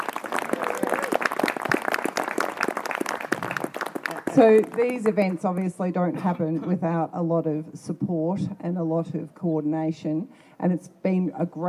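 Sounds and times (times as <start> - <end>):
audience applause: 0.0 - 5.2
speech: 4.4 - 11.6.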